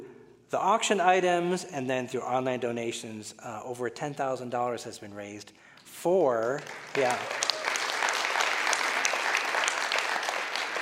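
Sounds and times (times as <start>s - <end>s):
speech: 0.5s - 7.6s
audience clapping at a fundraising event for water wells in Guatemala: 5.8s - 10.8s.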